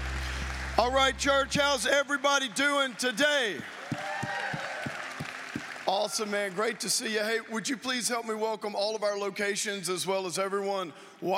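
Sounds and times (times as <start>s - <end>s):
applause: 0.0s - 7.5s
speech: 0.8s - 3.8s, 5.9s - 11.3s.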